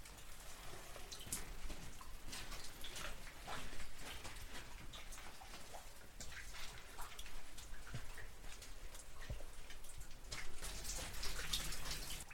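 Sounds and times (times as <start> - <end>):
raindrops falling from the ancient stones of a long barrow: 0.0 - 12.3.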